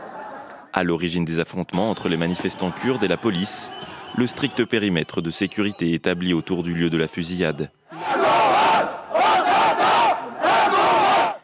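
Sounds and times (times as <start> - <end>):
speech: 0.8 - 7.8
large crowd of protesters chanting a name in unison: 7.9 - 11.4.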